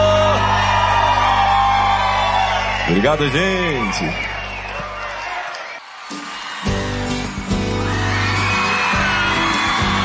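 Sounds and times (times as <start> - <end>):
crowd cheering and shouting: 0.0 - 10.0
speech: 2.9 - 4.4.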